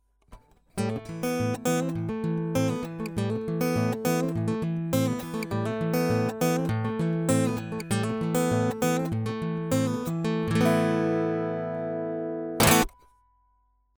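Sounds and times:
piezo acoustic guitar through a big amp: 0.7s - 13.0s.

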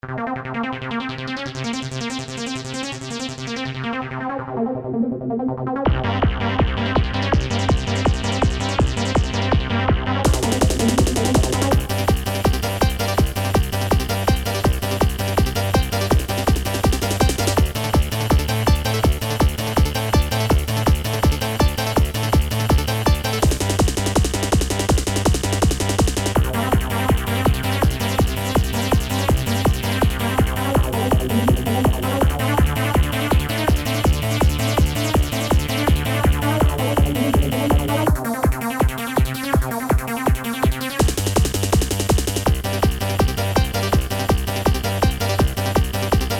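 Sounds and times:
Yamaha QS300 synthesizer music: 0.0s - 46.3s.

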